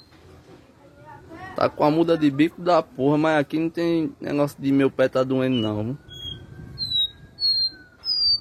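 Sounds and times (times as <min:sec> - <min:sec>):
speech: 0:01.6 - 0:06.0
Copper seedeater whistling: 0:05.4 - 0:08.4.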